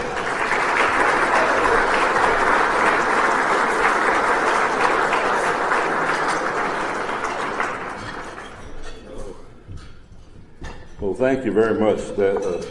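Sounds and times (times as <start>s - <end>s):
audience applause: 0.0s - 8.7s
speech: 11.2s - 12.6s.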